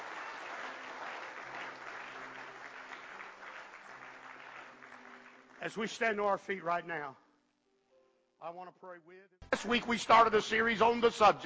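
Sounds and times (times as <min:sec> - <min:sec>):
audience hand clapping: 0:00.0 - 0:06.4
speech: 0:05.6 - 0:07.2, 0:08.4 - 0:11.4.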